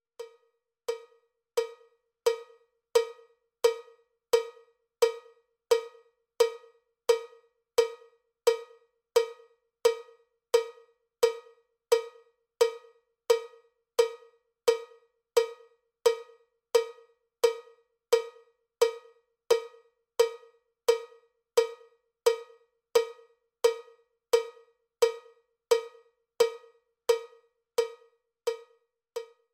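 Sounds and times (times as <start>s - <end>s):
cowbell click track: 0.2s - 29.5s.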